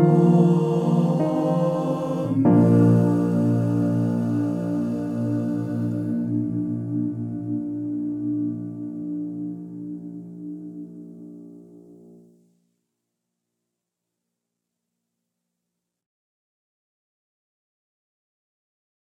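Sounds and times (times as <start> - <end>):
piano: 0.0 - 12.6.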